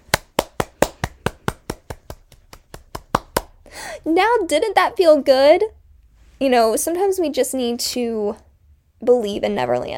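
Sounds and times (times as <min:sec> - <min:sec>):
hand clapping: 0:00.0 - 0:03.6
speech: 0:04.0 - 0:05.8, 0:06.4 - 0:08.4, 0:09.0 - 0:09.9.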